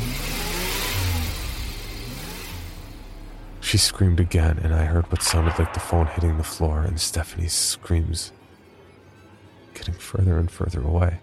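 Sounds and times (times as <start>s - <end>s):
car engine accelerating: 0.0s - 5.3s
speech: 3.7s - 8.4s, 9.8s - 11.2s.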